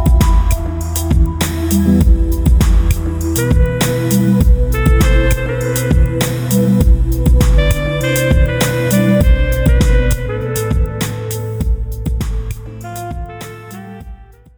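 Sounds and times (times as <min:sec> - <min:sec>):
saxophone melody lounge music: 0:00.0 - 0:14.5.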